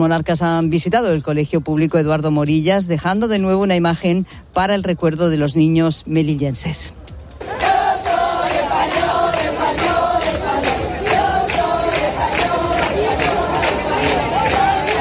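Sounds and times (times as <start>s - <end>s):
speech: 0.0s - 7.0s
crowd chanting in the streets of Melilla during a royal visit: 7.4s - 14.9s.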